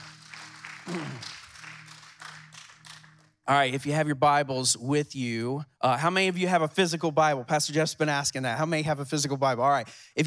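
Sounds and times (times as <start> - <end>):
audience applause: 0.0 - 3.3
speech: 3.5 - 10.2.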